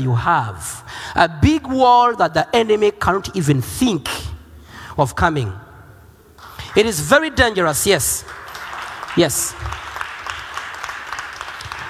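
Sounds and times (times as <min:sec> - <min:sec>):
speech: 0:00.0 - 0:04.2, 0:05.0 - 0:05.6, 0:06.8 - 0:08.4, 0:09.2 - 0:09.8
audience clapping: 0:06.4 - 0:11.8.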